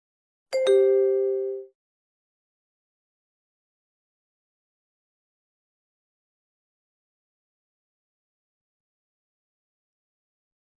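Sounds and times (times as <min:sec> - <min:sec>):
two-note electronic prompt tone for card entry: 0:00.6 - 0:01.7.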